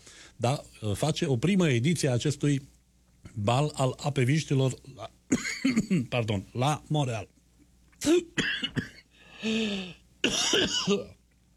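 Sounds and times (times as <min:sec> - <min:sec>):
speech: 0:00.4 - 0:02.8, 0:03.4 - 0:07.4, 0:08.0 - 0:08.6, 0:09.4 - 0:11.2
person coughing after choking: 0:05.3 - 0:06.1, 0:08.1 - 0:09.0, 0:10.2 - 0:11.2
throat clearing after choking: 0:05.3 - 0:06.2, 0:10.2 - 0:11.2.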